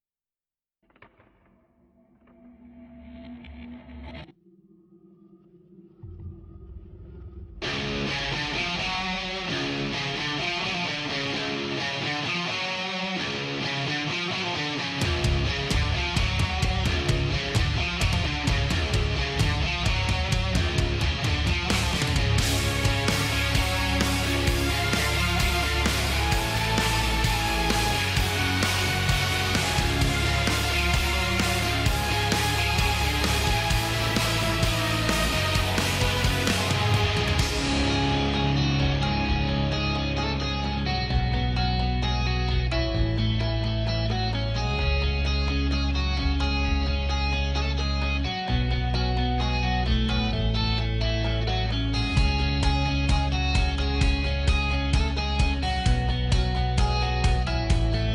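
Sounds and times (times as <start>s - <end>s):
instrumental music: 7.6s - 58.1s.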